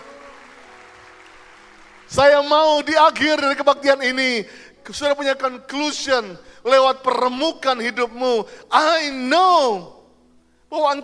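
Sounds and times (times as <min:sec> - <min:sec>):
audience applause: 0:00.0 - 0:02.2
speech: 0:02.1 - 0:10.0, 0:10.7 - 0:11.0.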